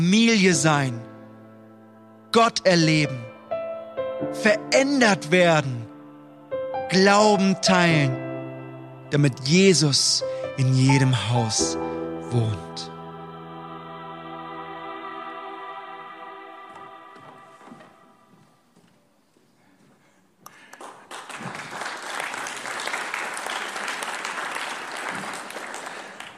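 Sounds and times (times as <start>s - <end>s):
speech: 0.0s - 1.1s, 2.3s - 3.3s, 4.2s - 5.9s, 6.9s - 8.2s, 9.1s - 12.9s
audience applause: 20.5s - 26.3s.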